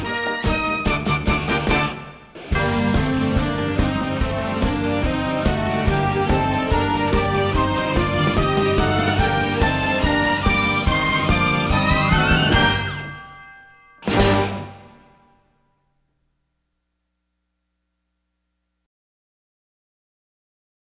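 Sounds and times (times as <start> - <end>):
musical accompaniment: 0.0 - 15.3.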